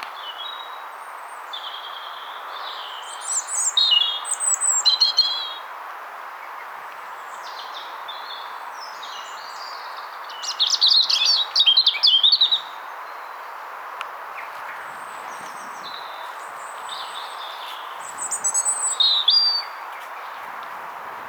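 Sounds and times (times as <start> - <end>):
European robin singing: 0.1 - 5.7, 7.2 - 13.6, 14.3 - 20.6.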